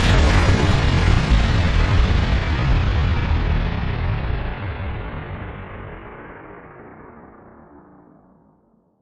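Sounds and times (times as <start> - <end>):
big boom impact: 0.0 - 6.2.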